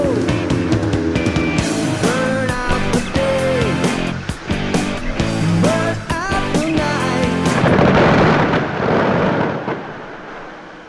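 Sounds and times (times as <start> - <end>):
iceberg calving: 0.1 - 10.6
leopard seals trilling: 0.5 - 7.1
melting brash ice crackling and popping: 1.6 - 10.8.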